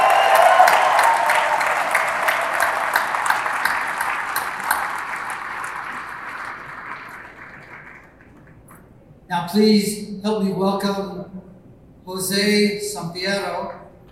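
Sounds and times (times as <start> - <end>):
audience applause: 0.0 - 8.8
speech: 9.5 - 11.2, 12.2 - 13.7.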